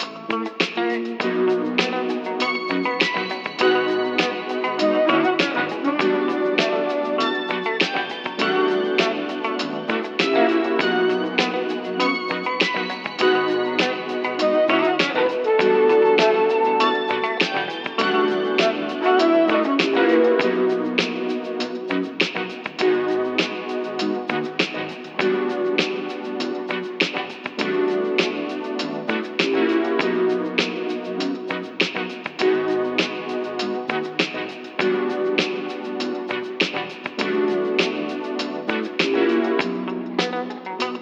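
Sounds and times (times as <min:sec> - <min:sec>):
elevator music: 0:00.0 - 0:41.0.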